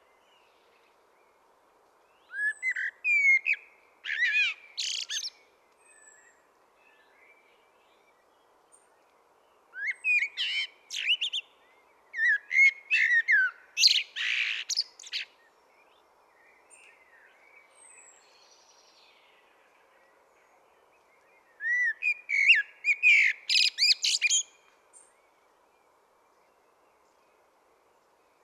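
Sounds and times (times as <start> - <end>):
common blackbird Turdus merula singing: 2.2 - 7.4, 9.7 - 16.0, 21.3 - 25.2.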